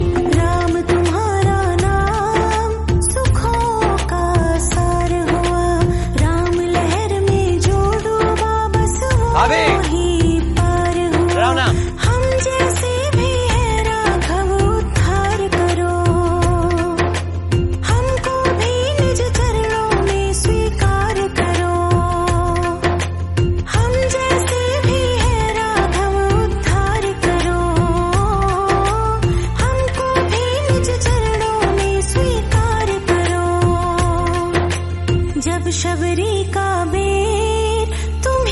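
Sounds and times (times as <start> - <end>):
Hindi devotional bhakti song: 0.0 - 38.5.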